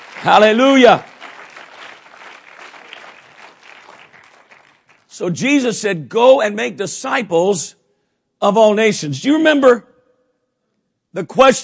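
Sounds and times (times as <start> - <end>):
audience clapping hands: 0.0 - 5.2
speech: 0.2 - 1.1, 5.2 - 7.8, 8.4 - 9.9, 11.1 - 11.6.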